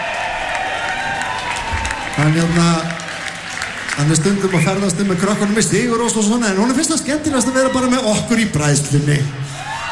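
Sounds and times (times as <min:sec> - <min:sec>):
audience applause at the Bræðslan music festival: 0:00.0 - 0:07.0
speech: 0:02.2 - 0:03.0, 0:04.0 - 0:09.6.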